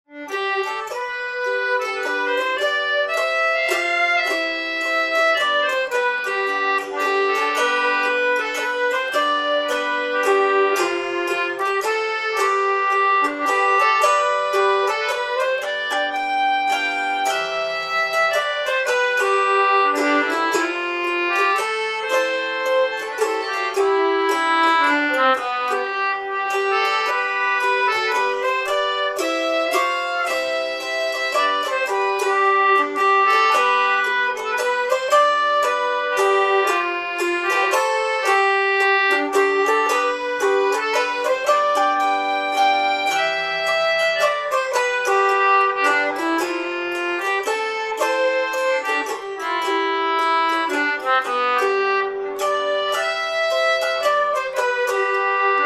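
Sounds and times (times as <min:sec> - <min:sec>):
waltz music: 0:00.0 - 0:55.6.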